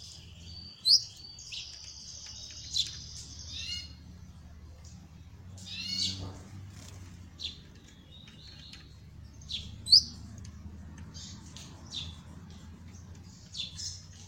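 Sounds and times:
copper-coloured Belgian canary singing trills and rattling rolls: 0.0s - 14.2s.

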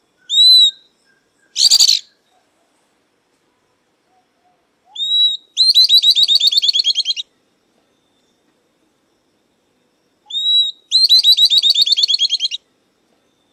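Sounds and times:
southern beardless-tyrannulet song: 0.2s - 2.2s, 4.9s - 7.3s, 10.3s - 12.6s.

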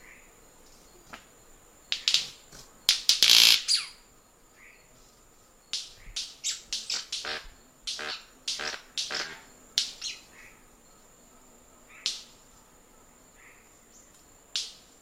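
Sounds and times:
white-bearded manakin snapping: 1.9s - 3.8s, 5.7s - 10.2s, 11.9s - 12.4s, 14.1s - 15.0s.

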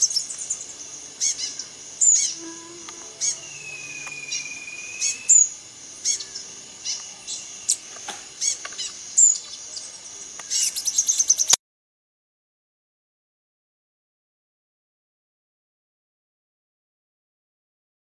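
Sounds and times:
rufous-collared sparrow singing: 0.0s - 11.6s.

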